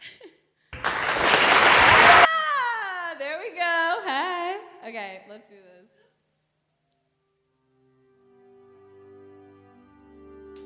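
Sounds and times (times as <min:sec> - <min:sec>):
crowd applause sound effect button: 0:00.7 - 0:02.4.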